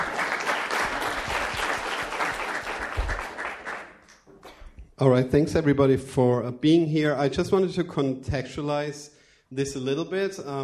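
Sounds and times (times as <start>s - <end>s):
audience applause: 0.0s - 4.0s
speech: 5.0s - 10.6s.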